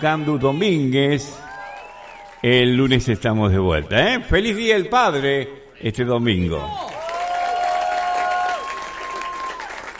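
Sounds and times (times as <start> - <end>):
speech: 0.0 - 1.4, 2.4 - 6.8
applause: 1.4 - 2.9, 6.7 - 9.9.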